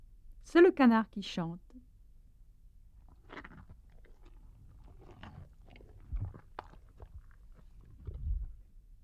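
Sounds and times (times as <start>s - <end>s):
speech: 0.5s - 1.6s
tiger eating: 1.9s - 9.0s.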